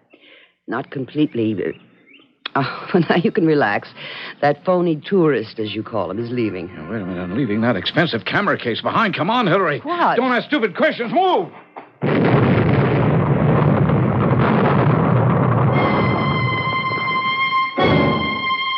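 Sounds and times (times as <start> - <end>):
speech: 0.7 - 1.9, 2.6 - 11.6
bomb explosion: 12.0 - 18.6.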